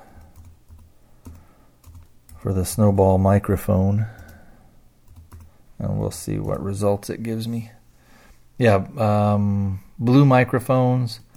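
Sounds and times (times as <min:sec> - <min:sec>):
typing on a computer keyboard entering a search for a Snowball USB microphone: 0:00.0 - 0:02.5, 0:04.1 - 0:04.5, 0:05.1 - 0:05.6, 0:06.4 - 0:06.6, 0:11.2 - 0:11.3
speech: 0:02.4 - 0:04.2, 0:06.1 - 0:07.8, 0:08.6 - 0:11.3.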